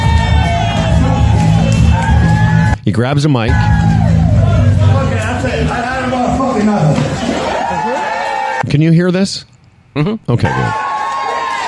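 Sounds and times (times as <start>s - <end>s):
crowd cheering: 0.0s - 2.8s, 3.5s - 8.6s, 10.4s - 11.6s
speech: 2.9s - 4.0s, 8.7s - 10.8s.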